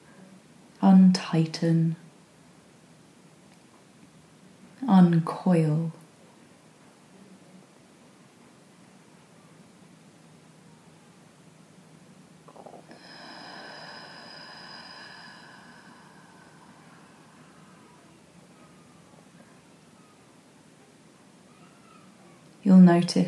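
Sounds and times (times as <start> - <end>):
soft hiss: 0.0 - 23.2
speech: 0.8 - 2.0, 5.0 - 6.0, 22.9 - 23.2
slow audible exhale during relaxation breathing: 12.6 - 18.0.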